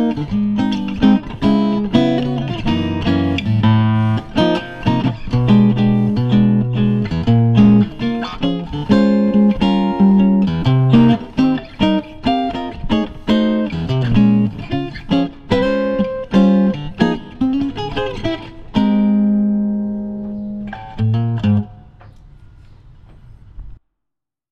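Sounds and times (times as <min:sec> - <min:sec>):
acoustic guitars playing chord melody: 0:00.0 - 0:21.8.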